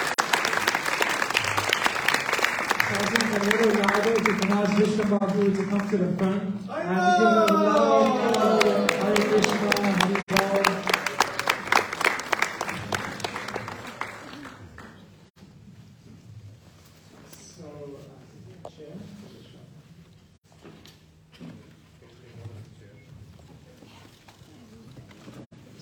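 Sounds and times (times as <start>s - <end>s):
people cheering: 0.0s - 4.7s, 6.7s - 14.8s
audience round of applause: 0.0s - 6.4s, 7.0s - 15.2s
speech: 2.9s - 10.2s.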